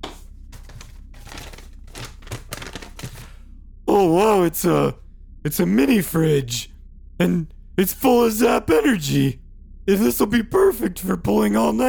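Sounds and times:
unwrapping a ribboned gift box: 0.6s - 3.3s
speech: 3.9s - 11.8s.

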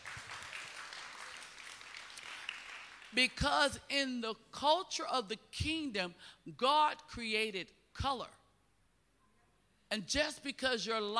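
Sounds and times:
audience clapping: 0.0s - 3.2s
speech: 3.1s - 8.4s, 9.9s - 11.1s.

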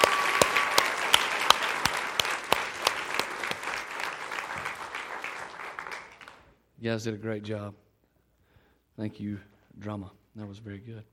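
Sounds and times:
round of applause for youth performers: 0.0s - 6.6s
speech: 6.8s - 7.8s, 9.0s - 11.1s.

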